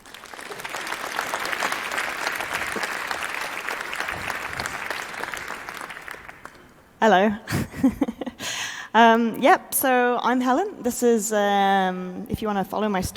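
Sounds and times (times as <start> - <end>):
audience applause: 0.0 - 6.8
speech: 7.0 - 8.2, 9.0 - 13.1.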